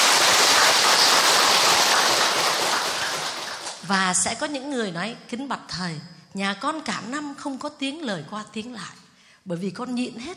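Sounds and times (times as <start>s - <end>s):
audience applause: 0.0s - 3.9s
speech: 3.9s - 10.3s.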